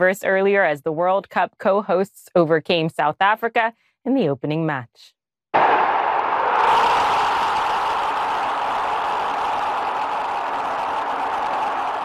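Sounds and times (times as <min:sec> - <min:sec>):
speech: 0:00.0 - 0:05.2
crowd cheering wildly after a Mexico goal: 0:05.6 - 0:12.0.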